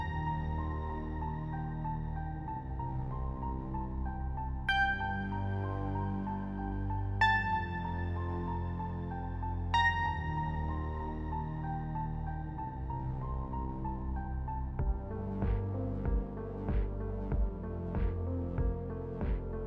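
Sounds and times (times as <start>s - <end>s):
ambient music: 0.0s - 19.6s.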